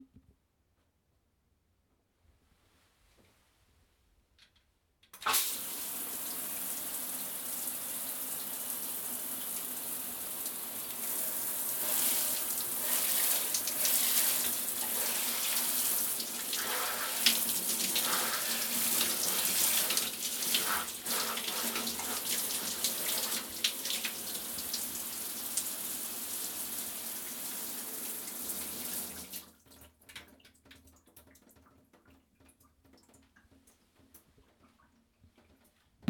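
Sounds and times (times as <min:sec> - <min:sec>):
shower running: 0:05.2 - 0:30.4.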